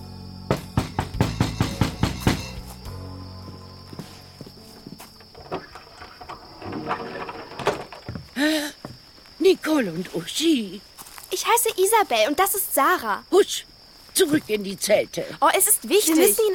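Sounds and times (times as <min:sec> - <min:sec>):
knocking on a hut door: 0:00.5 - 0:02.6
speech: 0:09.6 - 0:16.5.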